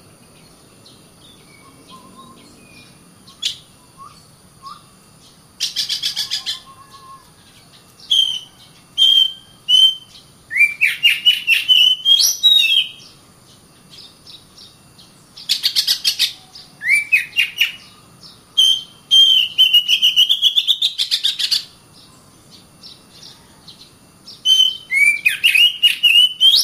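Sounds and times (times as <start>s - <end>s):
Oriental magpie-robin singing clear whistled notes: 0.9s - 7.2s, 8.0s - 13.2s, 15.4s - 22.2s, 24.3s - 26.6s.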